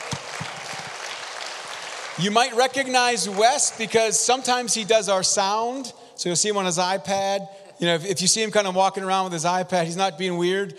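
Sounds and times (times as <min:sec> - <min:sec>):
crowd applause: 0:00.0 - 0:05.4
speech: 0:02.2 - 0:10.7.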